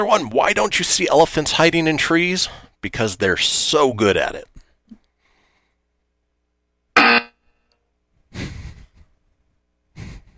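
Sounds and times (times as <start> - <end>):
speech: 0.0 - 4.5
loud buzzer: 7.0 - 7.4.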